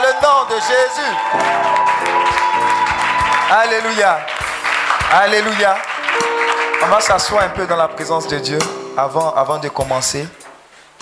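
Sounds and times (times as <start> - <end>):
audience applause: 0.0 - 7.9
speech: 0.6 - 2.8, 3.5 - 4.4, 5.1 - 10.4.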